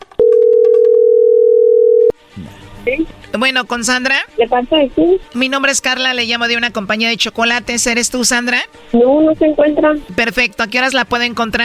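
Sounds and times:
telephone ringing tone: 0:00.2 - 0:02.2
speech: 0:03.4 - 0:11.6.

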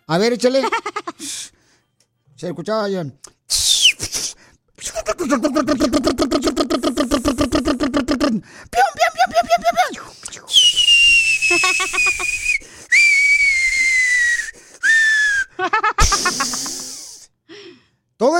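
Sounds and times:
speech: 0:00.1 - 0:01.6, 0:02.4 - 0:03.7, 0:05.1 - 0:06.7, 0:08.3 - 0:09.4
voice imitating a falling bomb whistle and explosion: 0:03.5 - 0:08.3, 0:09.8 - 0:17.1
laughter: 0:05.0 - 0:08.2, 0:08.8 - 0:10.0, 0:11.5 - 0:12.4, 0:15.6 - 0:17.0.

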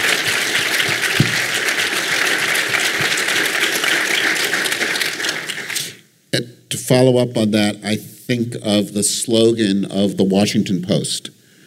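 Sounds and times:
audience applause at a live event: 0:00.0 - 0:06.0
speech: 0:06.3 - 0:11.3.

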